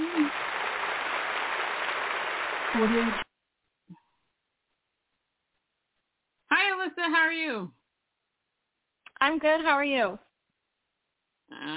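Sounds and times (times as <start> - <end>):
round of applause: 0.0 - 3.2
speech: 2.8 - 3.2, 7.1 - 7.8, 9.2 - 10.3, 11.5 - 11.7.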